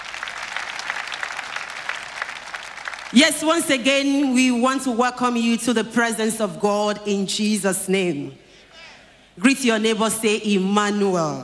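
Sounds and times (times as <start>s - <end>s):
church congregation applauding: 0.0s - 3.5s
speech: 3.1s - 8.4s, 9.4s - 11.4s.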